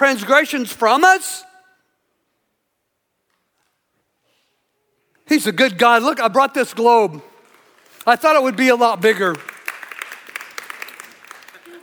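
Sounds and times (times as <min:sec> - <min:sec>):
speech: 0:00.0 - 0:01.5, 0:05.3 - 0:07.3, 0:08.0 - 0:09.5
polite golf clap from a small crowd: 0:07.2 - 0:11.8.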